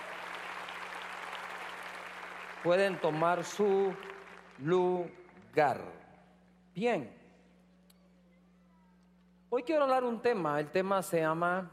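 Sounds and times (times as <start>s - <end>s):
church congregation applauding: 0.0s - 5.6s
speech: 2.6s - 6.0s, 6.8s - 7.2s, 9.5s - 11.7s.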